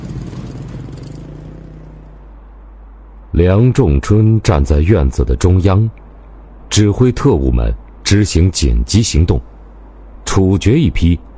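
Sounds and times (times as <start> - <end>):
motorcycles roaring: 0.0 - 2.8
speech: 3.4 - 6.0, 6.7 - 9.5, 10.3 - 11.3.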